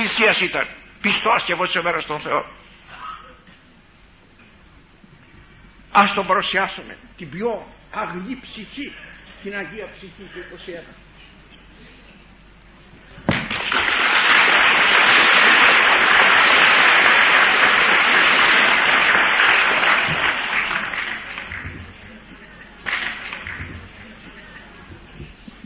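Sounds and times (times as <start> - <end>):
speech: 0.1 - 2.6, 6.0 - 11.1
crowd applause: 13.4 - 22.2.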